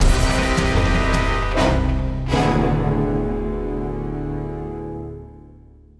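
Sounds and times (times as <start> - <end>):
action music ending: 0.0 - 4.5.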